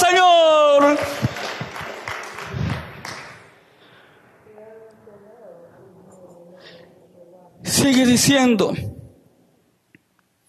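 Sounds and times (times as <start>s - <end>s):
audience applause: 0.7s - 3.7s
speech: 7.9s - 8.9s.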